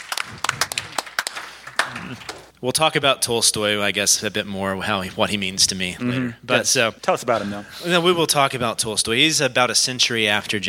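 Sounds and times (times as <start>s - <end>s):
scattered audience applause: 0.0s - 2.5s
speech: 2.1s - 10.6s.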